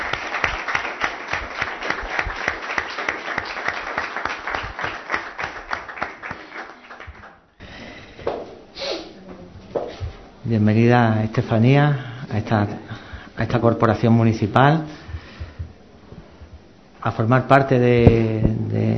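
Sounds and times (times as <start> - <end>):
audience applause for new councillor: 0.0 - 7.5
speech: 10.5 - 15.0, 17.0 - 18.9.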